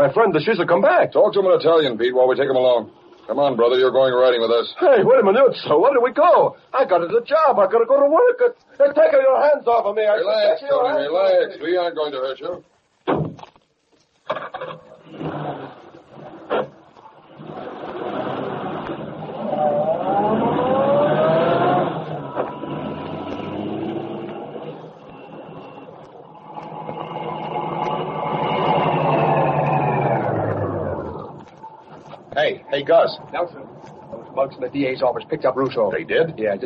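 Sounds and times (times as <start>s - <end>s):
speech: 0.0s - 12.7s, 32.9s - 36.6s
car engine running: 17.4s - 31.6s.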